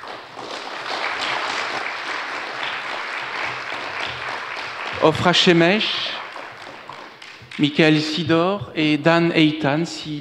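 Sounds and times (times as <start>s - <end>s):
audience applause welcoming three Israeli guests at a French cultural event: 0.0s - 7.6s
speech: 5.0s - 6.2s, 7.6s - 10.1s.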